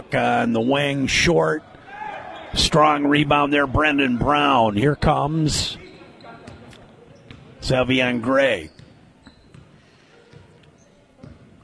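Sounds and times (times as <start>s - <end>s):
steady murmur: 0.0s - 11.6s
speech: 0.1s - 1.7s, 2.5s - 5.8s, 7.6s - 8.8s
basketball dribbled on the court during a game: 7.2s - 7.5s, 8.7s - 10.5s, 11.2s - 11.6s.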